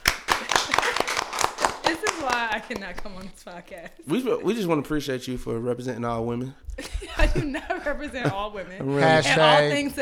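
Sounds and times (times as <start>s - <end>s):
audience applause: 0.0s - 2.8s
laughter: 0.4s - 1.3s, 6.8s - 9.3s
speech: 2.2s - 10.0s.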